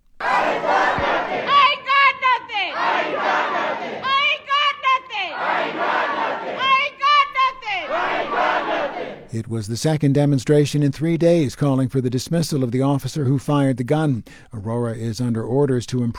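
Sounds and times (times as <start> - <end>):
protesters chanting in council chamber: 0.2 - 9.4
speech: 9.4 - 16.1.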